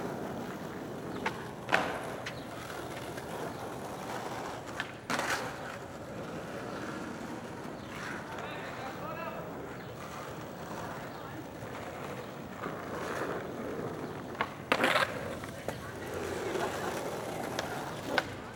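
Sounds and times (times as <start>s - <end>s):
skateboard wheels rolling in a city park: 0.0s - 18.5s
faint voices: 7.9s - 18.5s.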